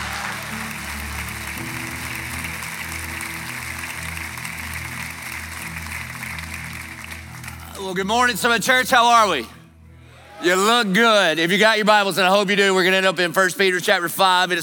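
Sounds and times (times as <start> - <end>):
church congregation applauding to welcome a pastor: 0.0 - 9.4
speech: 7.8 - 9.6, 10.4 - 14.6.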